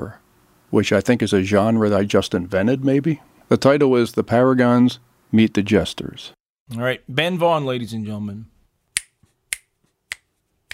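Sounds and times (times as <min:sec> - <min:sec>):
speech: 0:00.0 - 0:08.5
finger snapping: 0:09.0 - 0:10.7.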